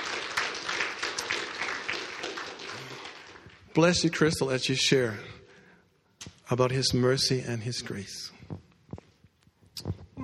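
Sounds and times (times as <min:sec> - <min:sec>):
audience clapping: 0:00.0 - 0:04.3
speech: 0:03.8 - 0:05.4, 0:06.5 - 0:08.4.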